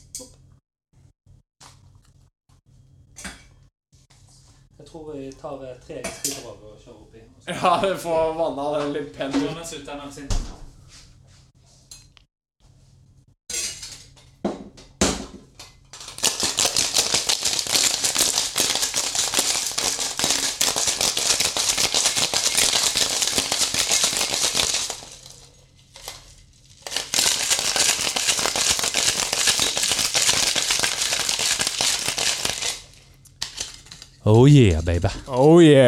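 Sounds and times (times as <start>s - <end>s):
speech: 4.9s - 10.6s, 34.3s - 35.8s
cocktail shaker with ice being shaken: 16.0s - 34.0s.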